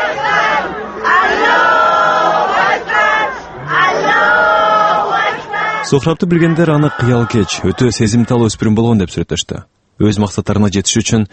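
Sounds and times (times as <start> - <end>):
funeral mourners chanting the name of Allah: 0.0 - 8.4
speech: 5.9 - 11.3.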